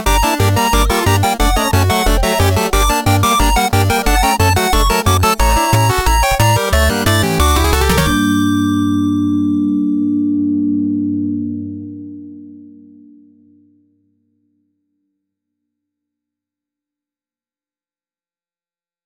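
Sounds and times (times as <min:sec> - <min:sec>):
spooky Halloween music: 0:00.0 - 0:13.8.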